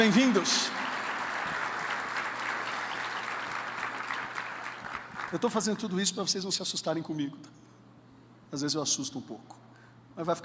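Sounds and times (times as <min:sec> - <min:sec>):
speech: 0:00.0 - 0:00.8, 0:05.3 - 0:07.8, 0:08.5 - 0:10.4
audience applauding: 0:00.0 - 0:05.8.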